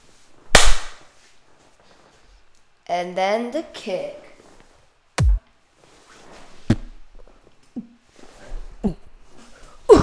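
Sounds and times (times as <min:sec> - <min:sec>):
sharp hand clap imitating a gunshot: 0:00.6 - 0:01.0
speech: 0:02.9 - 0:04.2.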